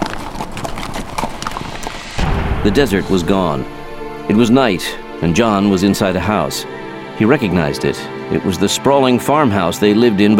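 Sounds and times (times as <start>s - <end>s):
horse hooves clip-clopping as riders walk along a trail: 0.0s - 2.2s
speech: 2.6s - 10.3s.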